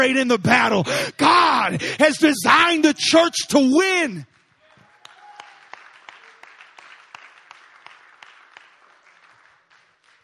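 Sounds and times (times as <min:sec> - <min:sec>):
speech: 0:00.0 - 0:04.3
audience applauding and clapping: 0:04.4 - 0:10.2.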